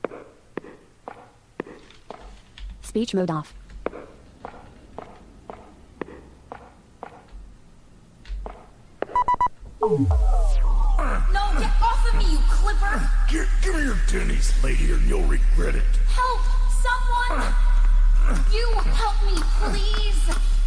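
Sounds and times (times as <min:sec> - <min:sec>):
video game character footsteps: 0:00.0 - 0:02.9, 0:03.5 - 0:07.5, 0:08.2 - 0:09.4
speech: 0:02.9 - 0:03.6, 0:09.9 - 0:10.4, 0:11.5 - 0:17.7, 0:18.3 - 0:20.5
electronic beeps and tones: 0:09.2 - 0:10.9.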